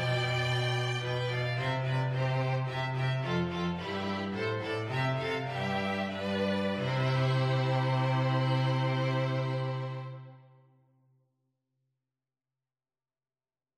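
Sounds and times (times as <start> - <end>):
cello: 0.0 - 10.6
violin: 0.0 - 10.6.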